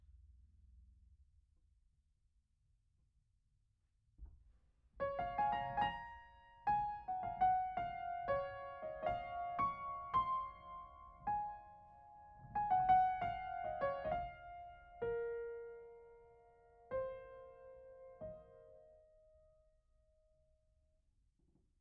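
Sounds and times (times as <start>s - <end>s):
piano: 5.0s - 20.5s.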